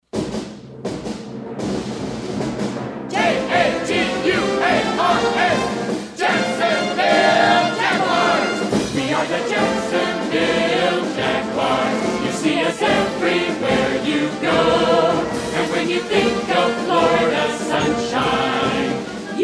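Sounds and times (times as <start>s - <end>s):
song: 0.4s - 19.4s.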